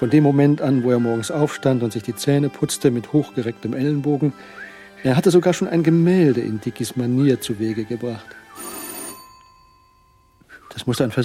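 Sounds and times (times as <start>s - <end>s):
speech: 0.0s - 8.4s, 10.8s - 11.2s
telephone bell ringing: 8.4s - 10.4s
soft chime: 8.6s - 11.2s.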